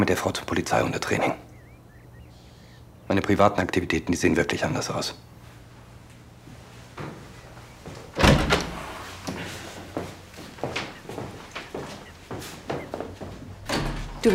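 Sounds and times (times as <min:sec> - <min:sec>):
speech: 0:00.0 - 0:01.5, 0:03.1 - 0:05.3
door being shut: 0:08.2 - 0:09.0, 0:13.6 - 0:14.3.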